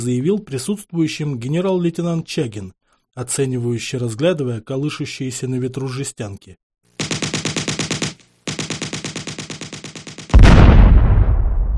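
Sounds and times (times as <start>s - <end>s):
speech: 0.0s - 6.6s
automatic gunfire at targets: 7.0s - 10.9s
loud booming explosion of an explosive-filled target: 10.3s - 11.7s.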